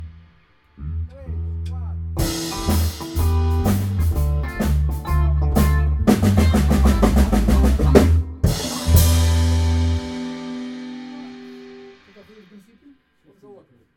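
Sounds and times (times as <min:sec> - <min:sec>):
blues endings: 0:02.2 - 0:12.8.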